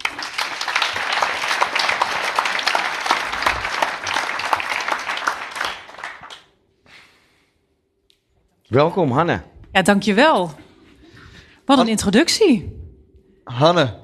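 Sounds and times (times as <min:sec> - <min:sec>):
crowd applauding: 0:00.0 - 0:06.6
speech: 0:08.7 - 0:10.6, 0:11.7 - 0:12.8, 0:13.5 - 0:14.0.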